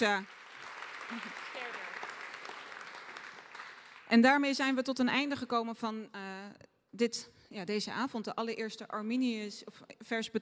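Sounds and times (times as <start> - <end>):
speech: 0.0 - 0.4, 1.1 - 1.8, 4.1 - 6.2, 6.9 - 10.4
applause: 0.0 - 4.8.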